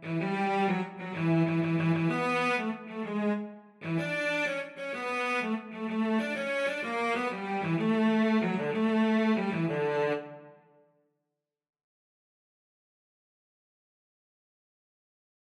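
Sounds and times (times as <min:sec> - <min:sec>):
cello duet: 0:00.0 - 0:10.6.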